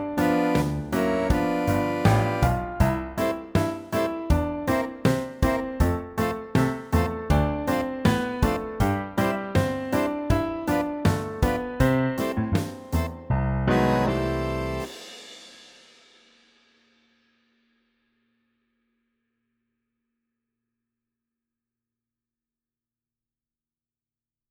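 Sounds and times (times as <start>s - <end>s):
backing track: 0.0s - 15.0s.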